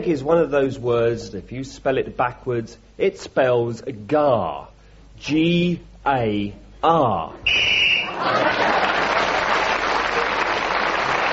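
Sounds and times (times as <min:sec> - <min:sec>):
speech: 0:00.0 - 0:07.6, 0:08.2 - 0:08.9
game whistle blown at time up: 0:07.4 - 0:08.2
laughter: 0:08.0 - 0:11.2.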